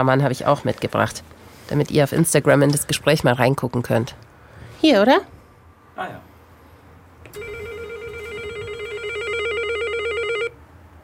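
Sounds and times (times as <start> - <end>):
speech: 0.0 - 5.4, 6.0 - 6.3
doorbell ringing: 7.3 - 10.6.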